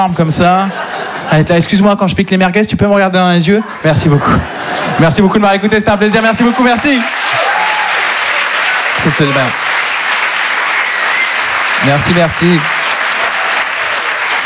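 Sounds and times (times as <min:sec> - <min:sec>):
laughter: 0:00.0 - 0:01.8, 0:03.4 - 0:14.4
speech: 0:00.0 - 0:07.2, 0:09.0 - 0:09.7, 0:11.8 - 0:12.8
audience applause: 0:05.6 - 0:14.4.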